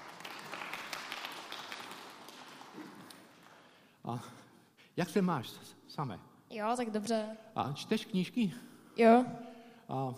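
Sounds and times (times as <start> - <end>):
audience applause: 0.0 - 3.7
speech: 4.1 - 4.4, 5.0 - 10.1.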